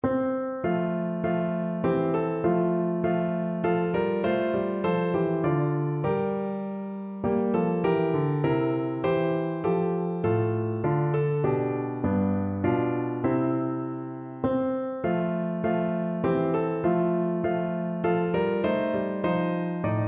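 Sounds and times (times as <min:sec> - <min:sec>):
piano: 0:00.0 - 0:20.0.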